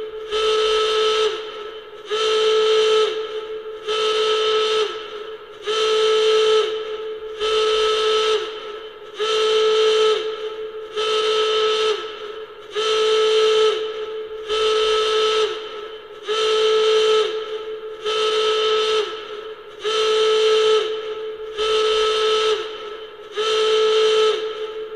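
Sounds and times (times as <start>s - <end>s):
klaxon horn: 0.0s - 24.9s.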